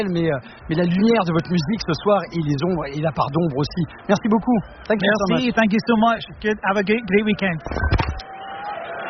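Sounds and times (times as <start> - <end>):
speech: 0.0 - 8.0
audience chattering in a darkened hall before a rock concert: 0.0 - 9.0.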